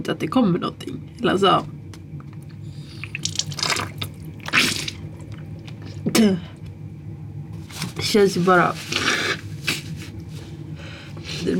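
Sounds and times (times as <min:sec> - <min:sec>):
speech: 0:00.0 - 0:01.8, 0:06.2 - 0:06.5, 0:08.0 - 0:09.1
salt water splashing and dripping during nasal rinsing: 0:02.9 - 0:05.7
sharp snort-like gush: 0:03.0 - 0:05.0.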